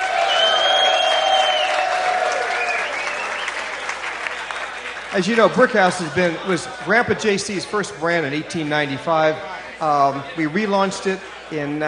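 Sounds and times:
audience applause: 0.0 - 5.9
speech: 5.2 - 11.8.

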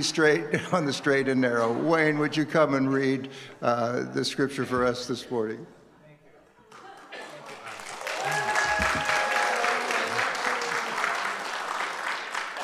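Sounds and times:
speech: 0.0 - 5.8
audience applause: 6.8 - 12.6.

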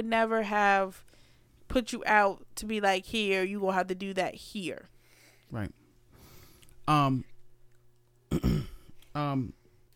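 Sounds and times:
speech: 0.0 - 1.1, 1.7 - 4.9, 5.5 - 5.8, 6.9 - 7.3, 8.3 - 9.6
person clearing a parched throat: 8.3 - 8.9.

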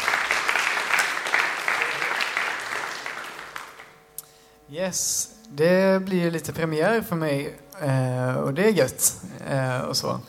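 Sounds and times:
audience applause: 0.0 - 4.0
speech: 4.7 - 10.2.

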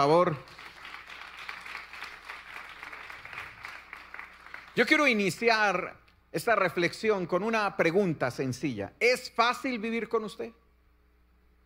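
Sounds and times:
speech: 0.0 - 0.6, 4.8 - 10.6
audience applause: 0.4 - 5.3.

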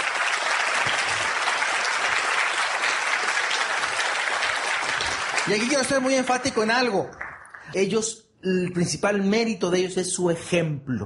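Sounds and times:
audience applause: 0.0 - 7.8
speech: 5.5 - 11.0.

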